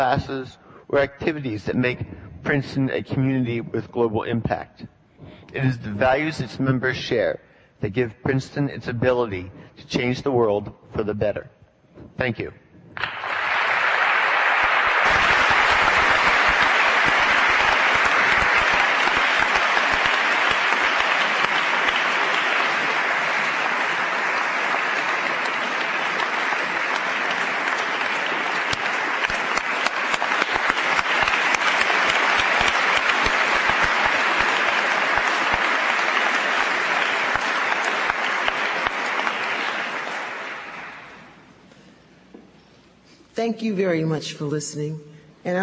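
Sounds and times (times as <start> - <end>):
speech: 0.0 - 4.9, 5.5 - 13.1, 43.6 - 45.6
large audience applause: 13.0 - 41.5.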